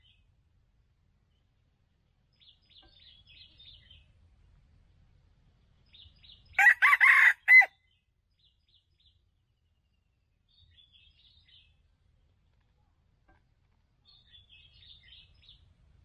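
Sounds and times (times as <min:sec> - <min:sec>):
red junglefowl crowing: 0:06.6 - 0:07.7.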